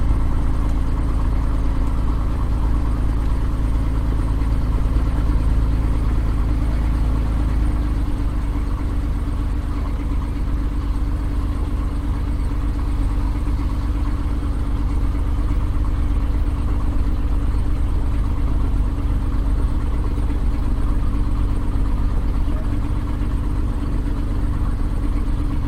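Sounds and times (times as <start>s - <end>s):
Cessna O-1 Bird Dog spotter aircraft engine starting, idling and taxiing, heard from the interior: 0.0s - 25.6s.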